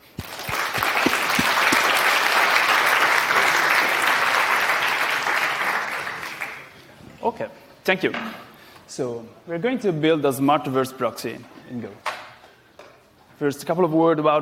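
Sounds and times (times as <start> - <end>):
audience applause: 0.0 - 6.8
speech: 7.4 - 12.1, 13.4 - 14.4.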